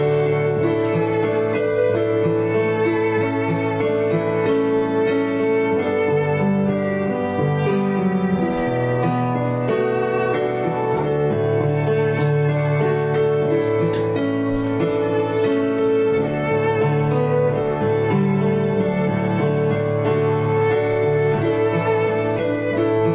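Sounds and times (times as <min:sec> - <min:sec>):
piano playing a prelude: 0:00.0 - 0:23.1
violin playing a prelude: 0:00.0 - 0:23.1.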